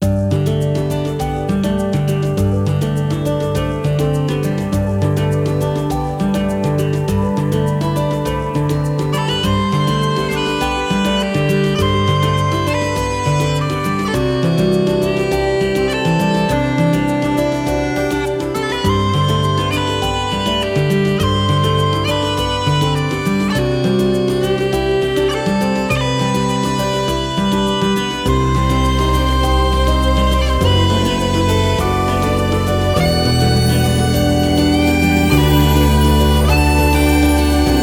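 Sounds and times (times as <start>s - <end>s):
modern background music: 0.0s - 37.8s.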